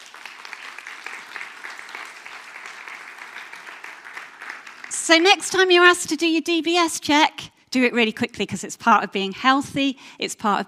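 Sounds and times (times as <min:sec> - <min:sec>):
audience applause: 0:00.0 - 0:05.4
speech: 0:05.1 - 0:10.6.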